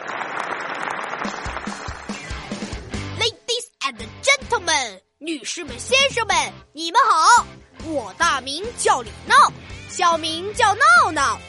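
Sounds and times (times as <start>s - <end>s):
applause welcoming two class monitor candidates: 0.0s - 2.7s
speech: 1.2s - 1.8s, 4.9s - 11.4s.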